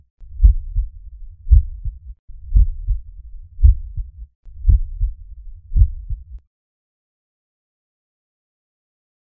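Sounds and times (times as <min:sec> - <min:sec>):
normal heartbeat at the cardiac apex: 0:00.2 - 0:06.4.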